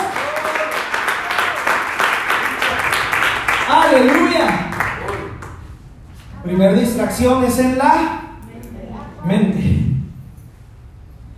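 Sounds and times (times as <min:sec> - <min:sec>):
audience applauding: 0:00.0 - 0:05.8
speech: 0:03.7 - 0:04.6, 0:06.5 - 0:08.2.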